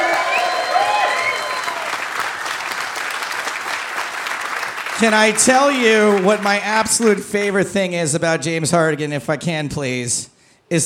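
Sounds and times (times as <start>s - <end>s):
audience applause: 0.0s - 7.6s
speech: 5.0s - 10.8s.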